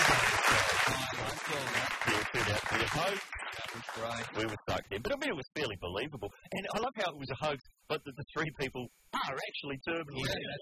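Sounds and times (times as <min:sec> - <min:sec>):
applause: 0:00.0 - 0:04.8
speech: 0:02.8 - 0:10.6.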